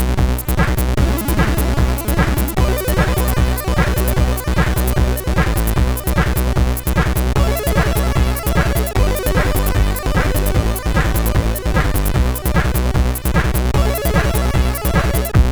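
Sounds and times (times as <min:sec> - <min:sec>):
SID CSG8580 sound chip loop: 0:00.0 - 0:15.4.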